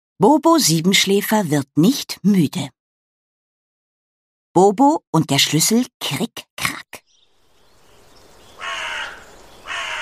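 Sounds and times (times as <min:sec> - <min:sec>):
speech: 0:00.2 - 0:02.8, 0:04.5 - 0:06.5
bird cawing: 0:08.4 - 0:09.9.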